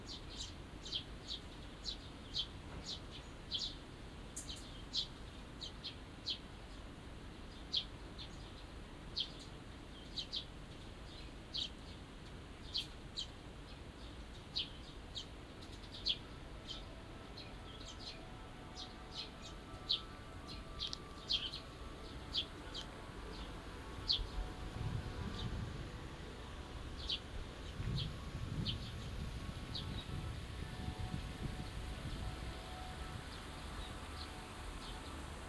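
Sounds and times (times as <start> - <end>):
small birds chirping: 0.0 - 35.4
low steady rumble: 13.3 - 35.4.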